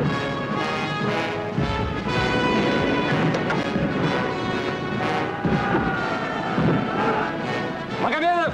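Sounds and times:
dense sustained tonal backdrop: 0.0 - 8.0
artillery shell fired and exploding by a German artillery gun: 1.8 - 5.9.

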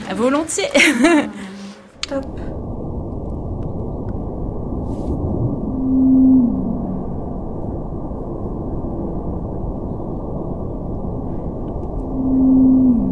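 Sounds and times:
constant rumbling noise floor: 0.0 - 13.1
speech: 0.1 - 2.6
laughter: 0.7 - 1.6
Antarctic blue whale calls, sped up: 4.8 - 10.2, 11.2 - 13.1.

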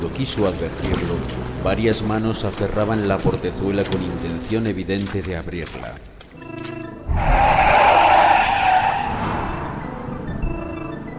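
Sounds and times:
speech: 0.0 - 6.1
car tires squealing: 7.1 - 10.5.

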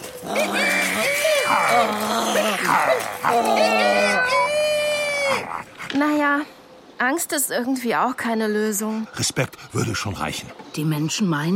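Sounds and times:
voice imitating an animal growl: 0.2 - 4.6
speech: 5.9 - 11.5.

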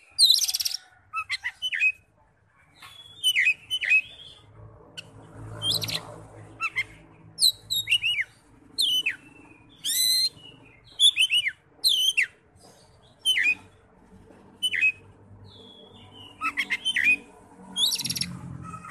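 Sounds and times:
Oriental magpie-robin singing: 0.2 - 2.0, 2.8 - 4.4, 6.6 - 9.2, 9.8 - 10.4, 11.0 - 12.3, 13.2 - 13.6, 14.6 - 15.0, 15.7 - 17.2, 17.8 - 18.3.

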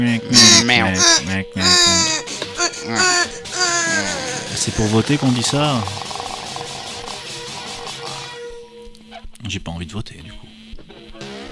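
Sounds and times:
speech: 0.0 - 3.4, 4.0 - 6.1, 9.4 - 10.5
adult voice imitating baby babble: 0.3 - 6.7.

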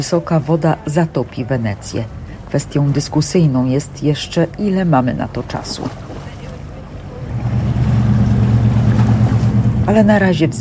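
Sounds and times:
speech: 0.0 - 6.1, 9.9 - 10.5
motorboat carrying water chugging along a Venetian canal in Venice: 3.4 - 10.5.

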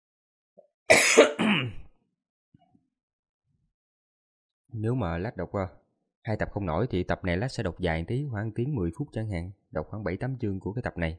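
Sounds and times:
speech: 0.9 - 1.4, 4.8 - 11.1
coughing: 0.9 - 1.9.

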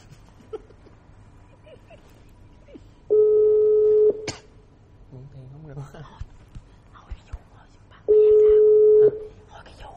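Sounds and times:
steady telephone tone: 3.1 - 4.3, 8.1 - 9.4.

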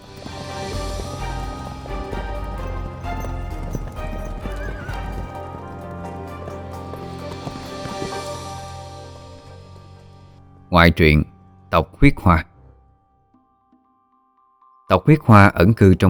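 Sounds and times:
horses galloping: 0.0 - 10.1
horse whinnying: 0.3 - 8.8
speech: 10.8 - 12.5, 14.9 - 16.0.

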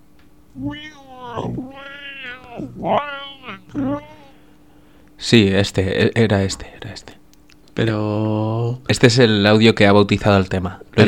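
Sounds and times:
cat meowing in a played audio file: 0.6 - 4.3
speech: 5.3 - 7.1, 7.8 - 11.0.

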